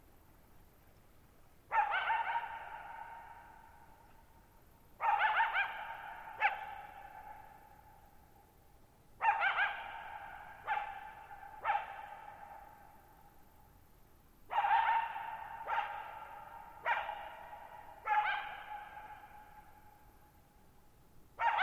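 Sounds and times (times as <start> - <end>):
coyote barking: 1.7 - 3.8, 5.0 - 7.8, 9.2 - 13.0, 14.5 - 19.9, 21.4 - 21.6.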